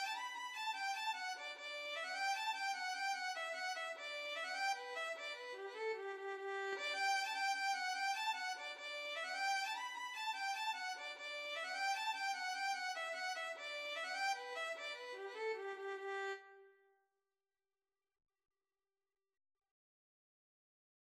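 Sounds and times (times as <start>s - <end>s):
Irish traditional violin tune: 0.0s - 16.8s.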